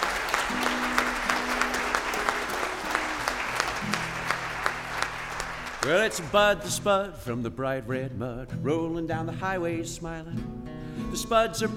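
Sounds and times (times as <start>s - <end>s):
audience applause: 0.0s - 6.6s
crowd hum: 0.0s - 6.7s
speech: 5.8s - 11.7s.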